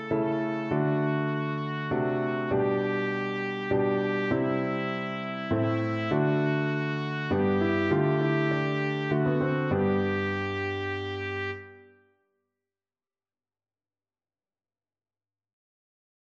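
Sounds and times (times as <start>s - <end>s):
trumpet playing a hymn: 0.0s - 12.0s.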